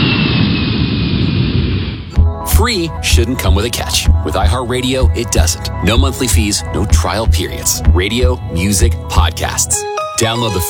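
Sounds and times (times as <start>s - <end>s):
airplane taking off at a regional airport: 0.0s - 10.6s
speech: 2.6s - 10.6s.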